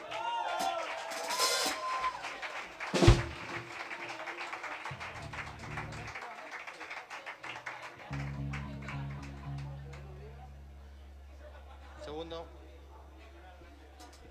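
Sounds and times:
voices and whoops: 0.0 - 2.4
audience applause: 0.0 - 10.5.

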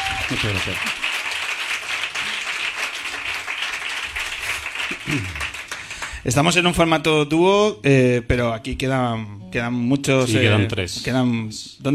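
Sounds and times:
audience applause for the guitarists: 0.0 - 6.3
speech: 0.3 - 1.0, 5.0 - 5.5, 6.2 - 11.9.

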